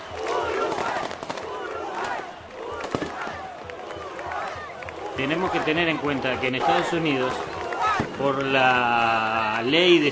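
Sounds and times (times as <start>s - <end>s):
steady noisy crowd murmur: 0.0s - 10.1s
firecrackers and fireworks thrown by the Uruguayan community in the United States: 0.2s - 2.2s, 2.8s - 3.6s, 7.8s - 9.2s
speech: 5.2s - 7.6s, 8.2s - 10.1s.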